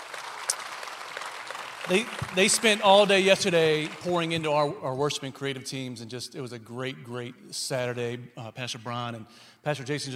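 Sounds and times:
crowd applause: 0:00.0 - 0:04.6
speech: 0:01.9 - 0:10.1.

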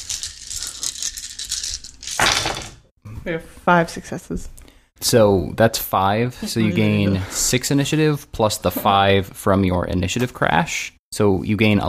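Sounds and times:
fifteen dice rolling and rattling: 0:00.0 - 0:02.8
speech: 0:03.2 - 0:11.8.

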